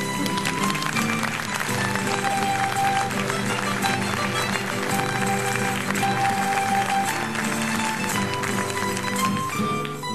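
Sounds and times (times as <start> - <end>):
audience applause: 0.0 - 10.0.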